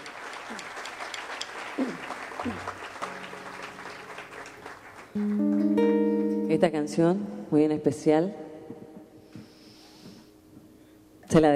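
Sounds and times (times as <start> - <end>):
audience applause: 0.0 - 5.7
speech: 5.2 - 5.6, 6.5 - 8.8, 11.3 - 11.5.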